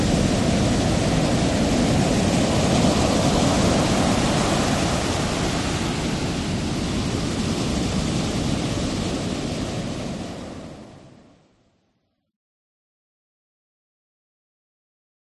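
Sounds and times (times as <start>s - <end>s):
ocean waves: 0.0s - 11.6s.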